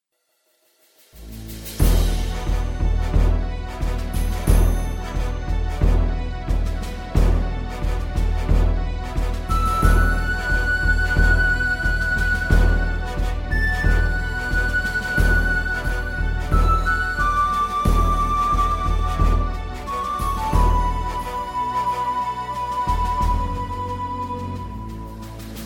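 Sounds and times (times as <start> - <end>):
background music: 1.1 - 25.6.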